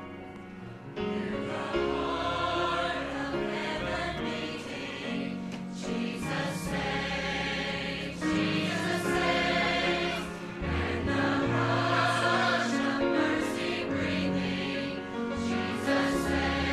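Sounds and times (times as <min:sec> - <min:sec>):
choir singing: 0:00.9 - 0:16.7.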